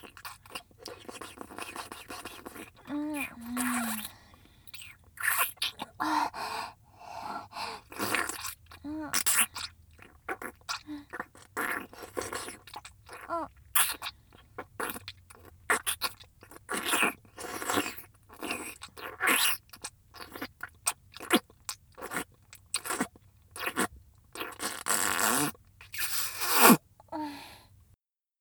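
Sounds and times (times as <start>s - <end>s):
light wet sucking sounds: 0.0s - 20.5s, 22.0s - 26.8s.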